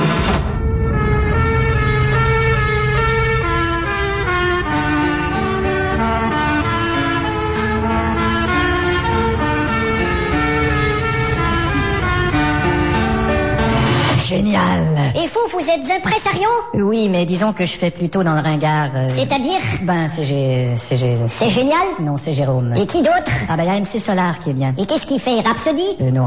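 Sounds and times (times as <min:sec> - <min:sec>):
low road rumble: 0:00.0 - 0:15.2
police car siren: 0:00.1 - 0:14.2
speech: 0:15.8 - 0:26.2.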